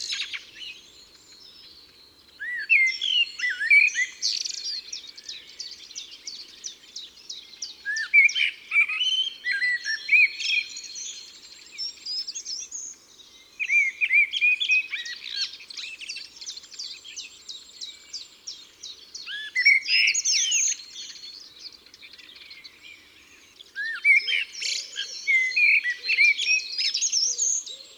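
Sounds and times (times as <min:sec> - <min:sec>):
common blackbird singing: 0:00.0 - 0:27.9.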